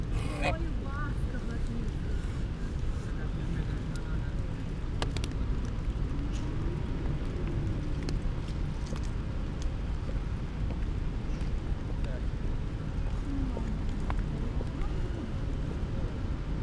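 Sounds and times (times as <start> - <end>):
close goose vocalisations: 0.2 - 0.6
rain: 1.2 - 16.6.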